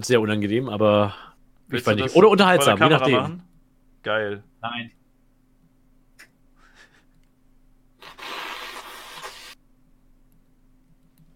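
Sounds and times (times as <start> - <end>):
speech: 0.0 - 5.0
person blowing nose into a tissue: 8.0 - 9.6
sniffing: 8.0 - 9.6.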